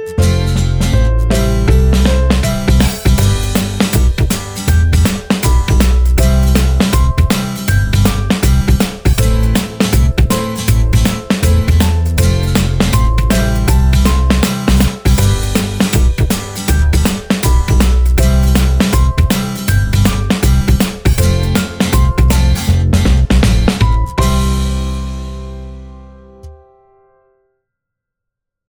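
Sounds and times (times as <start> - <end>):
upbeat commercial music: 0.2 - 26.1.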